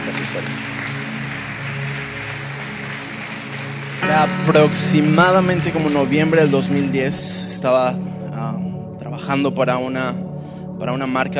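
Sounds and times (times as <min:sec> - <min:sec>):
audience applause: 0:00.0 - 0:07.6
speech: 0:00.2 - 0:01.0, 0:04.0 - 0:10.2, 0:10.8 - 0:11.3.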